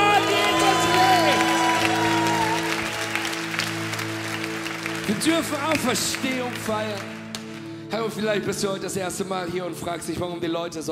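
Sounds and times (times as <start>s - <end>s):
audience clapping: 0.1s - 7.8s
speech: 5.1s - 7.2s, 8.0s - 10.8s.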